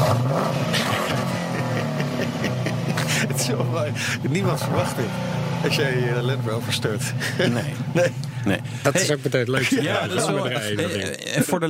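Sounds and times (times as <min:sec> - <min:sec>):
tuned GM LS V8 engine revving: 0:00.0 - 0:09.0
laughter: 0:00.7 - 0:04.5, 0:07.1 - 0:08.2, 0:08.8 - 0:11.6
speech: 0:03.5 - 0:11.6.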